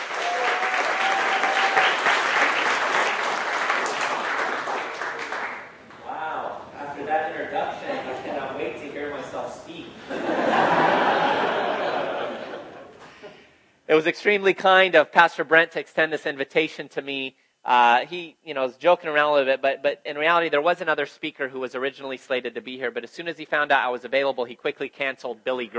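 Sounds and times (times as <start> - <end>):
audience applauding to welcome a speaker: 0.0 - 5.9
laughter: 7.6 - 8.6, 10.0 - 13.4
speech: 14.0 - 25.7.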